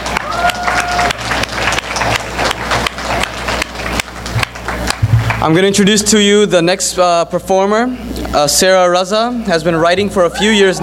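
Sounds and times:
audience applause: 0:00.0 - 0:05.6
speech: 0:05.4 - 0:10.8.

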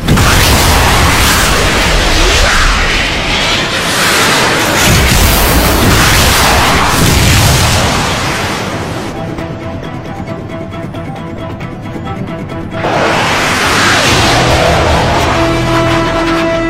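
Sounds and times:
cruise missiles launching toward an enemy position: 0:00.0 - 0:09.2, 0:12.8 - 0:16.5.

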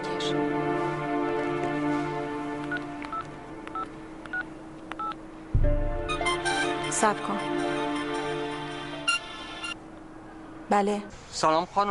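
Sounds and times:
hum: 0:00.0 - 0:11.8
telephone keypad dialing tones: 0:02.7 - 0:05.2
low thump: 0:05.5 - 0:06.4
speech: 0:07.0 - 0:07.9, 0:10.7 - 0:11.8.

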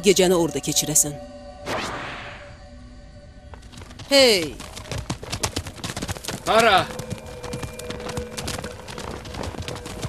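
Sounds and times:
speech: 0:00.0 - 0:02.0, 0:04.1 - 0:05.0, 0:06.5 - 0:07.0
horse hooves clip-clopping as a horse is led away: 0:03.5 - 0:10.0.

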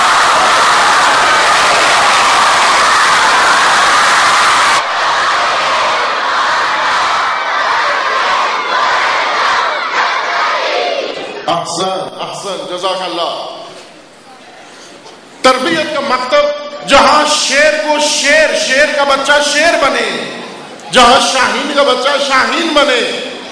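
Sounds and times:
crowd loudly chanting salawat in unison: 0:00.2 - 0:11.4
speech: 0:11.7 - 0:13.5, 0:15.4 - 0:20.4, 0:20.9 - 0:23.2.

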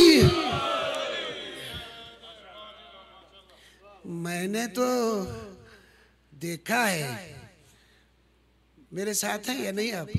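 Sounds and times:
crowd at a religious gathering shouting a slogan in unison: 0:00.0 - 0:02.4
speech: 0:04.4 - 0:05.5, 0:06.4 - 0:07.4, 0:08.9 - 0:10.1.

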